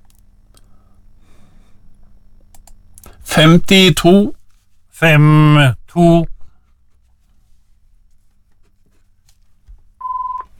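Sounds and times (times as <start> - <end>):
speech: 3.4 - 4.4, 5.0 - 6.3
telephone ringing tone: 10.0 - 10.5.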